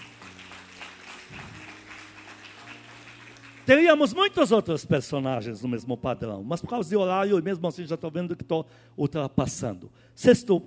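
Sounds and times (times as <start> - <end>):
audience applause: 0.0 - 4.0
speech: 3.7 - 10.6.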